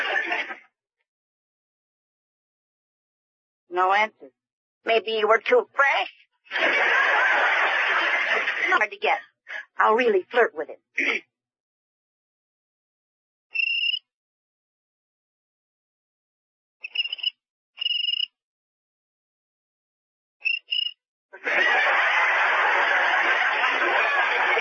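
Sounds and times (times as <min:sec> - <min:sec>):
laughter: 0:00.0 - 0:00.6, 0:06.5 - 0:09.7, 0:21.4 - 0:24.5
speech: 0:03.8 - 0:07.6, 0:08.7 - 0:11.3
cricket chirping in rhythm: 0:13.6 - 0:14.0, 0:16.8 - 0:18.3, 0:20.4 - 0:21.0.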